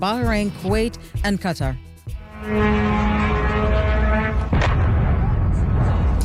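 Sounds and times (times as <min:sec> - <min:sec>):
speech: 0:00.0 - 0:03.0
Iranian Shahed drone explosion hitting a warehouse in Al-Shuhabiyah Kuwait: 0:02.4 - 0:06.2.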